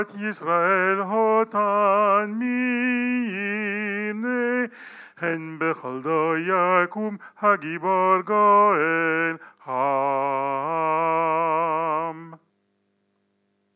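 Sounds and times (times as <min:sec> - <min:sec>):
soprano singing: 0:00.0 - 0:12.4.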